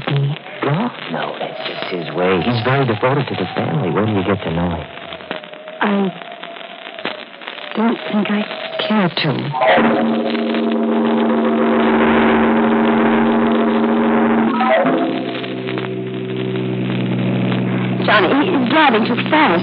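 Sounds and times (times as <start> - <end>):
speech: 1.1 - 5.0, 5.8 - 6.3, 7.8 - 11.4, 18.1 - 19.6
car engine droning while driven fast down a dark road at night: 10.3 - 18.4.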